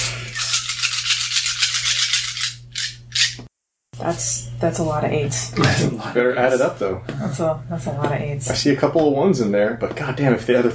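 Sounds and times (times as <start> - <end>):
handful of dice rattling and clattering: 0.3 - 3.4
speech: 4.0 - 10.7.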